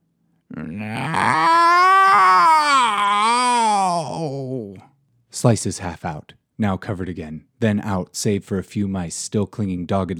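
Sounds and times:
cat screaming in an eerie, almost human-sounding yowl: 0.8s - 4.3s
speech: 5.4s - 10.1s.

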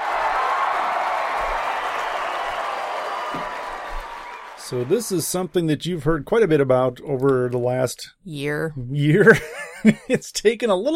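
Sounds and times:
cheering and applause effect: 0.0s - 5.7s
speech: 4.7s - 10.9s
laughter: 9.2s - 10.4s.

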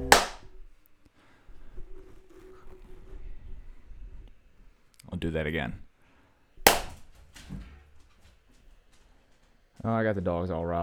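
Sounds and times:
hand clap for audio sync: 0.0s - 0.5s, 6.7s - 7.0s
speech: 5.2s - 5.9s, 9.8s - 10.8s.

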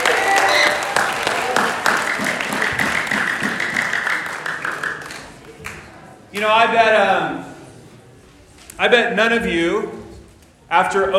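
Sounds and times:
audience applause: 0.0s - 5.8s
speech: 6.4s - 7.5s, 8.8s - 10.0s, 10.7s - 11.1s.

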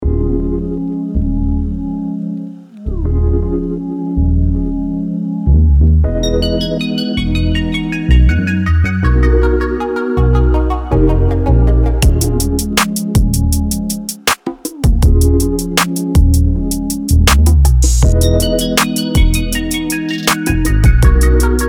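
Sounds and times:
groove music: 0.0s - 21.6s.

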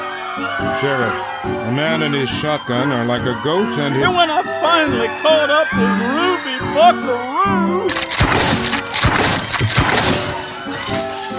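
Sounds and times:
speech: 0.4s - 8.2s
drinking glasses smashing: 7.9s - 11.3s
scattered glass shards tinkling: 7.9s - 11.3s.

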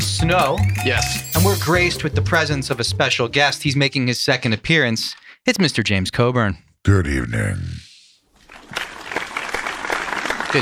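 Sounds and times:
speech: 0.3s - 7.8s
reserved, elegant clapping: 8.7s - 10.6s.

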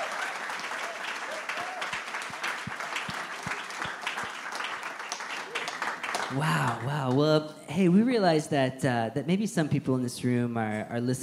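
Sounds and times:
audience applause: 0.0s - 7.2s
speech: 6.3s - 11.2s.

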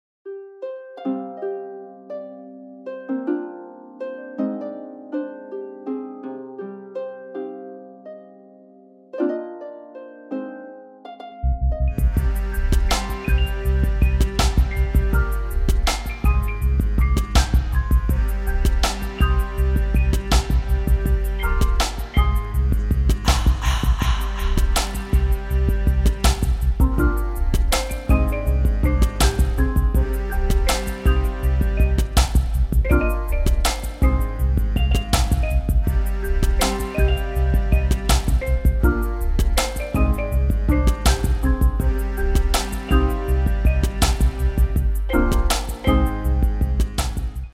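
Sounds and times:
instrumental music: 0.3s - 47.5s.

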